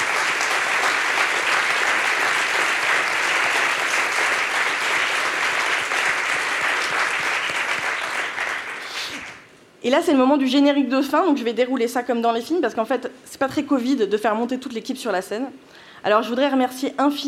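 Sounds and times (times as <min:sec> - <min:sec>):
audience applause: 0:00.0 - 0:09.4
speech: 0:09.8 - 0:17.2.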